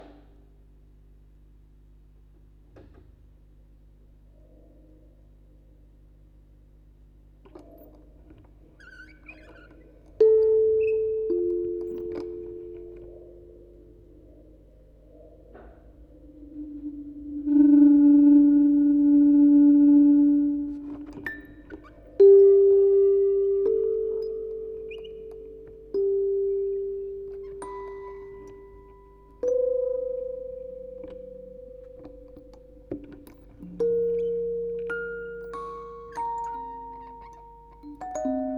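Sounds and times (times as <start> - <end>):
quartet of music boxes playing: 10.1 - 14.7, 16.4 - 38.5.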